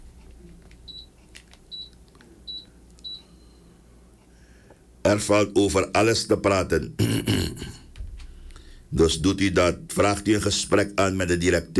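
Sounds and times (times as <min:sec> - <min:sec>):
low steady hum: 0:00.0 - 0:11.7
high-pitched electronic beeps from an air conditioner remote: 0:00.9 - 0:03.7
speech: 0:05.1 - 0:07.7, 0:09.0 - 0:11.7.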